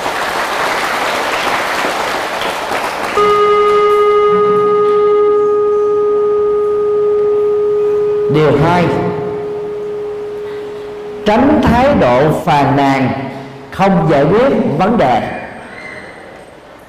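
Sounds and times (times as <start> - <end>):
loud crowd applause: 0.0 - 3.2
steady horn-like tone: 3.2 - 14.0
speech: 8.4 - 9.0, 11.3 - 15.4.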